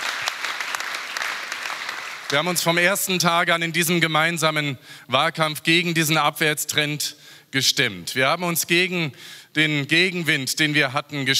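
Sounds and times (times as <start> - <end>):
audience applause: 0.0 - 2.5
speech: 2.3 - 11.3.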